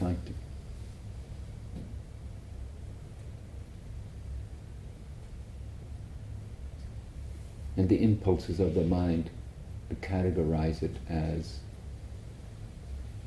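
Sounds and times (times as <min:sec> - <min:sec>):
air conditioning rumbling: 0:00.0 - 0:13.2
speech: 0:07.8 - 0:11.7.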